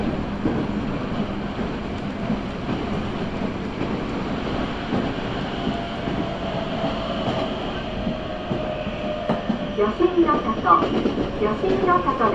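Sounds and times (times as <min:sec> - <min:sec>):
Nankai Line local train rumbling: 0:00.0 - 0:12.3.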